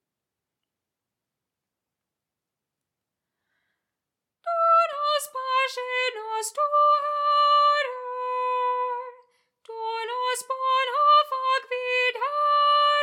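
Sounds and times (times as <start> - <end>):
soprano singing: 4.4 - 13.0.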